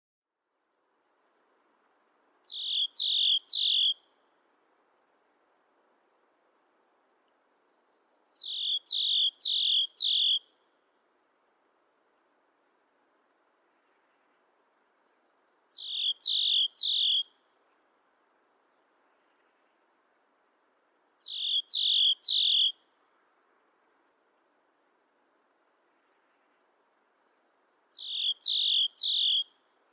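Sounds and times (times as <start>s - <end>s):
faint low hiss: 0.2s - 29.9s
bird calling downslurred chirps: 2.4s - 4.1s, 8.4s - 10.5s, 15.7s - 17.4s, 21.2s - 22.8s, 27.9s - 29.6s.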